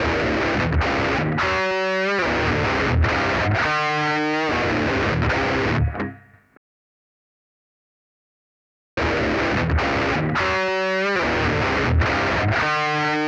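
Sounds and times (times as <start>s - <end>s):
saturated guitar: 0.0s - 6.6s, 9.0s - 13.2s.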